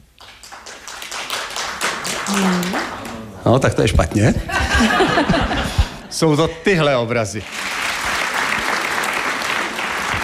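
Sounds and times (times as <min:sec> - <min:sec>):
audience clapping: 0:00.2 - 0:03.9, 0:07.3 - 0:10.2
speech: 0:02.3 - 0:05.5, 0:06.1 - 0:07.6
laughter: 0:04.2 - 0:06.4.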